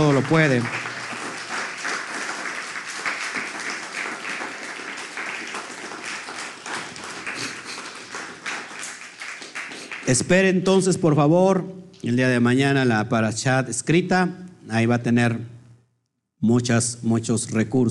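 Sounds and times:
speech: 0.0s - 0.9s, 10.1s - 15.6s, 16.4s - 17.8s
audience applause: 0.0s - 10.2s.

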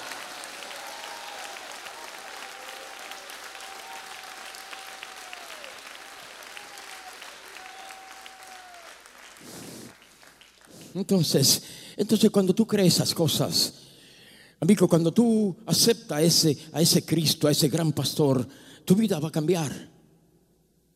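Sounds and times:
audience applause: 0.0s - 10.9s
speech: 11.0s - 13.9s, 14.6s - 20.0s.

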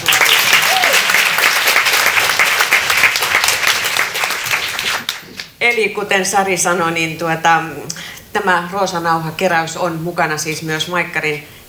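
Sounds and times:
audience applause: 0.0s - 5.5s
speech: 5.8s - 11.6s.

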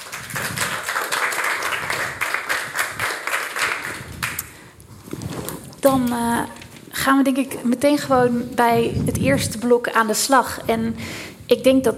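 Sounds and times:
audience applause: 0.0s - 4.5s
speech: 5.8s - 11.9s.

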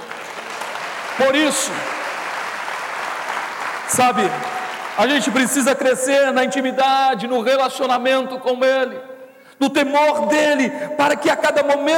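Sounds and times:
audience applause: 0.0s - 5.7s
speech: 1.2s - 2.0s, 3.9s - 11.9s.

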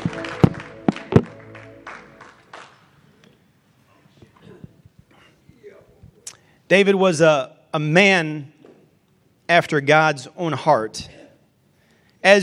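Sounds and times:
seated audience clapping hands: 0.0s - 3.3s
speech: 6.7s - 8.6s, 9.5s - 11.2s, 12.2s - 12.4s.

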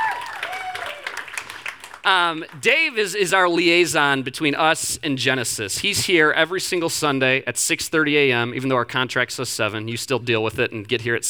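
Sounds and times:
audience clapping: 0.0s - 3.2s
speech: 2.1s - 11.2s.

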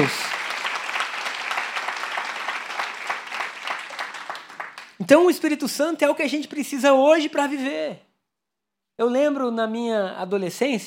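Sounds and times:
speech: 0.0s - 0.3s, 5.0s - 8.1s, 9.0s - 10.8s
crowd applause: 0.0s - 5.0s.

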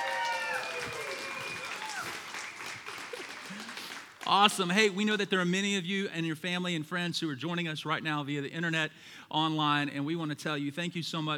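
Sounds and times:
church congregation applauding: 0.0s - 4.8s
speech: 4.3s - 11.3s.

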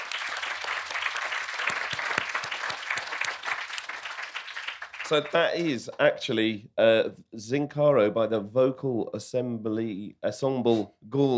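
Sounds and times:
audience applause: 0.0s - 5.5s
speech: 5.1s - 11.3s.

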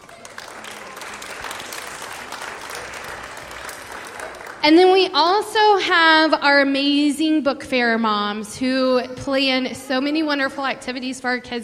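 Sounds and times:
audience round of applause: 0.0s - 4.8s
speech: 4.6s - 11.6s.

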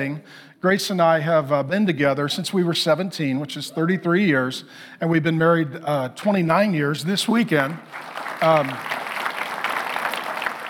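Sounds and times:
speech: 0.0s - 9.0s
audience applause: 7.7s - 10.6s.

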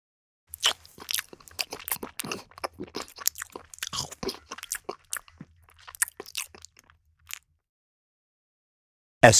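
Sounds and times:
man eating scrambled egg: 0.5s - 7.5s.

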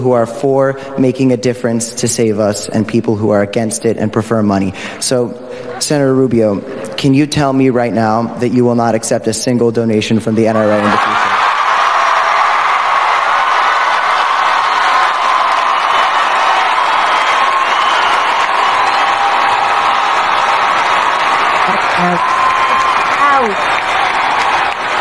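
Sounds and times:
speech: 0.0s - 11.3s
audience applause: 10.5s - 25.0s.

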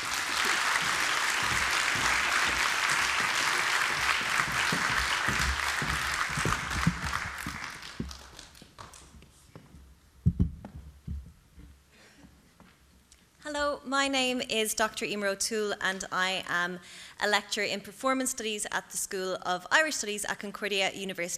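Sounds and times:
audience applause welcoming two speakers onto a stage: 0.0s - 9.1s
speech: 13.9s - 21.3s.

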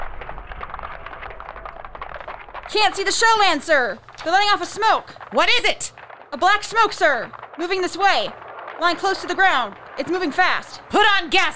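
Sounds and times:
artillery gun fire in a War of the Worlds radio drama: 0.0s - 11.5s
speech: 2.7s - 11.5s.

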